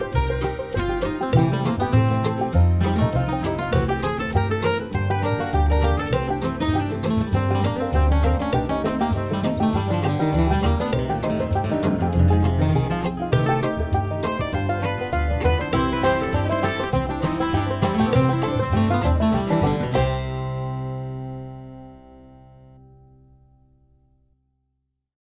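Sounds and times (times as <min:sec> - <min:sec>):
drum kit playing boogie over a backing track: 0:00.0 - 0:20.2
backing track music: 0:00.0 - 0:23.0.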